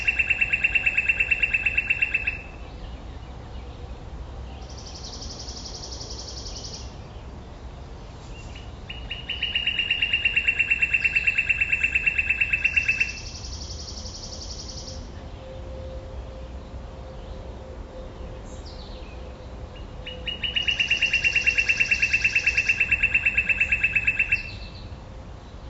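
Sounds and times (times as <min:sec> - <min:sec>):
thinner higher bird calls: 0:00.0 - 0:02.6, 0:08.4 - 0:15.1, 0:20.1 - 0:24.9.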